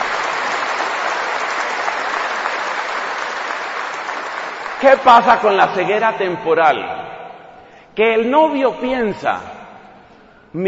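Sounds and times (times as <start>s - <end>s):
audience applause: 0.0s - 5.1s
speech: 4.8s - 7.1s, 8.0s - 9.6s.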